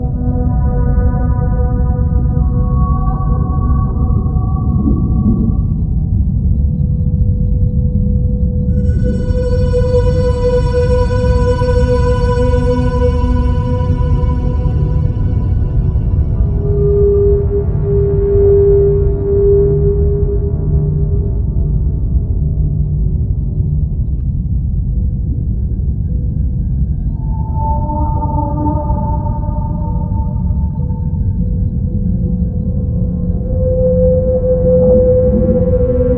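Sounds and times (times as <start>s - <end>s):
whale song: 0.0s - 22.6s, 25.6s - 36.1s
deep rumbling noise: 1.7s - 36.1s.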